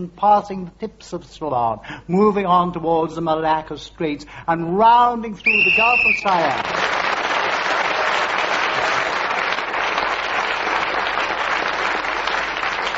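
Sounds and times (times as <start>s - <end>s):
speech: 0.0s - 6.9s
audience applause: 5.8s - 12.9s.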